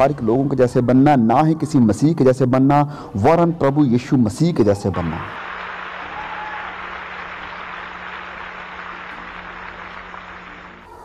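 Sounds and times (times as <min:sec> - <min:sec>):
speech: 0:00.0 - 0:05.4
audience clapping: 0:05.0 - 0:11.0.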